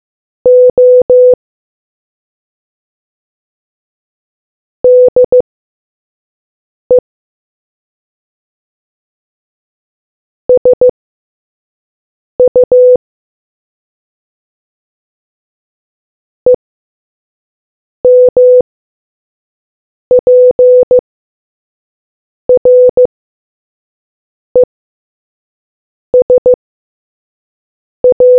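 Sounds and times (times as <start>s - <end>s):
morse code beeps: 0.5s - 1.4s, 4.8s - 5.4s, 10.6s - 10.9s, 12.4s - 13.0s, 18.1s - 18.6s, 20.1s - 21.0s, 22.6s - 23.1s, 26.2s - 26.6s, 28.0s - 28.3s.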